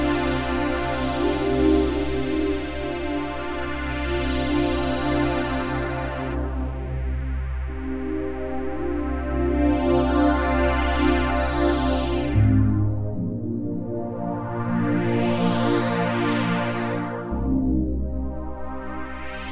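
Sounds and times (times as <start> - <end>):
layered super strings synth pad: 0.0 - 17.4.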